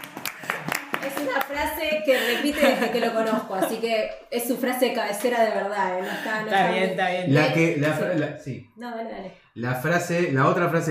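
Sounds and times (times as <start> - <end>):
audience applause: 0.0 - 1.8
laughter: 0.4 - 4.1
speech: 1.2 - 10.8.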